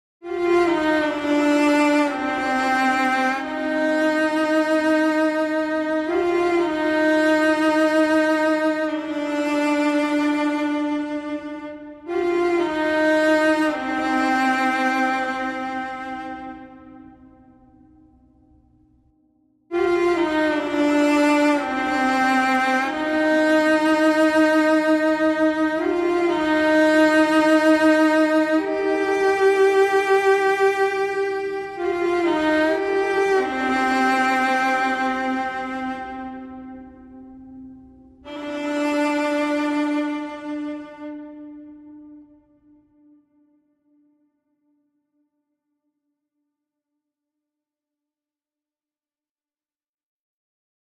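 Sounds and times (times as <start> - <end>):
viola: 0.2 - 18.6, 19.7 - 43.8.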